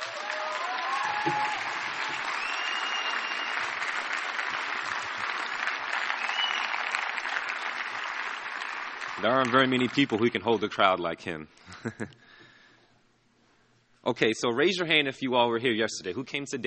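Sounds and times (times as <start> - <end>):
audience applause: 0.0 - 10.3
speech: 1.2 - 1.5, 9.2 - 12.2, 14.0 - 16.6.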